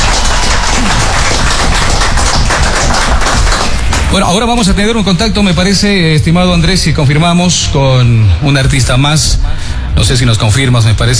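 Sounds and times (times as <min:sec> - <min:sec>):
loud applause: 0:00.0 - 0:04.6
speech: 0:04.1 - 0:11.1.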